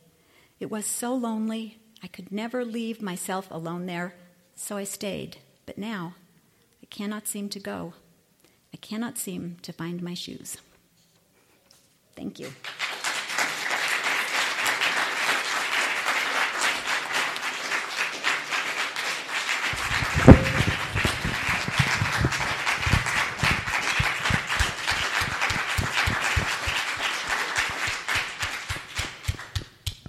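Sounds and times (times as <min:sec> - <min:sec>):
speech: 0:00.6 - 0:06.2, 0:06.9 - 0:08.0, 0:08.7 - 0:10.7, 0:12.2 - 0:12.8
audience applause: 0:12.6 - 0:29.6.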